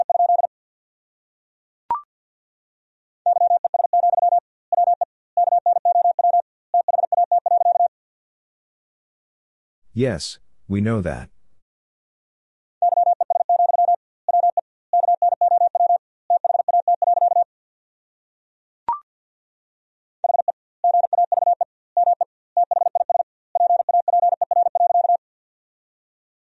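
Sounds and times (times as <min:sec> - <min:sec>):
Morse code tones sending a sentence: 0:03.3 - 0:07.9, 0:12.8 - 0:17.4, 0:20.3 - 0:25.2
speech: 0:10.0 - 0:11.4.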